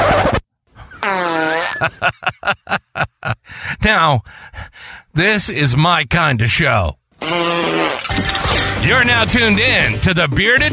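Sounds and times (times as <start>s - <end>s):
fart: 1.0s - 1.8s, 7.2s - 8.2s
speech: 1.8s - 2.8s, 3.9s - 4.5s, 5.2s - 10.7s.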